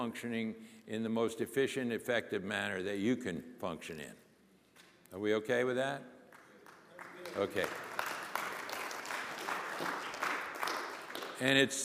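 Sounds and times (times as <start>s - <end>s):
speech: 0.0s - 4.2s, 5.1s - 6.2s, 7.2s - 7.9s, 11.4s - 11.8s
audience applause: 6.3s - 11.6s.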